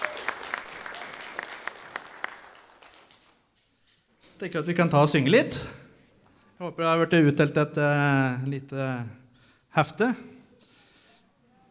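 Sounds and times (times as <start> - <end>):
audience applause: 0.0 - 3.5
speech: 4.4 - 5.8, 6.6 - 9.2, 9.8 - 10.3.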